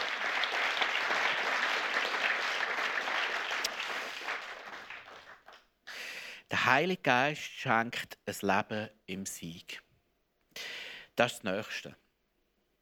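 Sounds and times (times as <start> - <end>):
audience applause: 0.0 - 6.0
speech: 6.6 - 9.8, 11.2 - 12.0.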